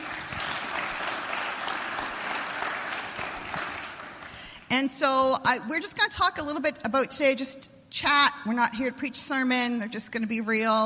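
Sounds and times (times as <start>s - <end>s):
crowd clapping: 0.0s - 4.6s
speech: 4.7s - 10.8s.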